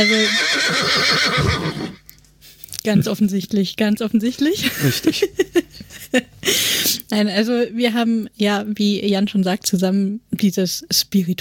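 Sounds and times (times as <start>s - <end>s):
horse neighing: 0.0s - 2.0s
speech: 0.0s - 2.0s, 2.8s - 11.3s.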